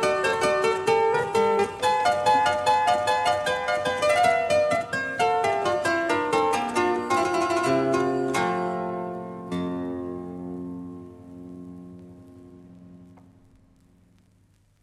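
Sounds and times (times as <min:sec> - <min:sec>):
harpsichord pieces: 0:00.0 - 0:09.8.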